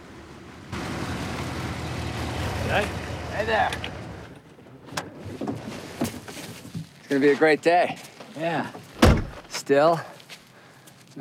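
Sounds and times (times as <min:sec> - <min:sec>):
car pulling up alongside another: 0:00.0 - 0:07.6
speech: 0:02.7 - 0:04.0, 0:07.1 - 0:08.8, 0:09.7 - 0:10.1.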